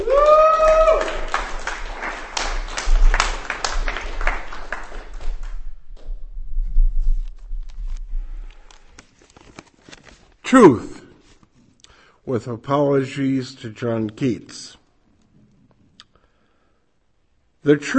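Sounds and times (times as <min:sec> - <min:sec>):
scattered audience applause at a poetry reading: 0:00.0 - 0:05.7
speech: 0:10.5 - 0:10.9, 0:12.3 - 0:14.8, 0:17.6 - 0:17.9.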